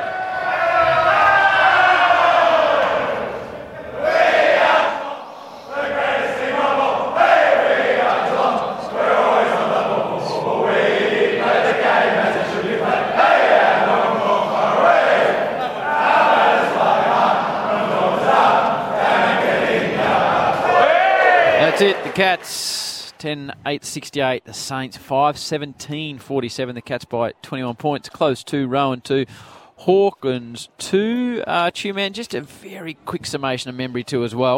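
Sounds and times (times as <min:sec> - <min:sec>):
rowdy group chanting a team club song after a win: 0:00.0 - 0:22.1
speech: 0:22.3 - 0:22.6, 0:23.2 - 0:34.5.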